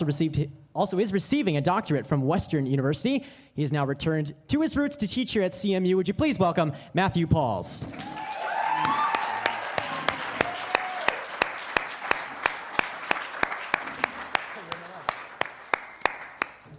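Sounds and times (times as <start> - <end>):
speech: 0.0 - 9.0
audience applause: 7.8 - 16.7.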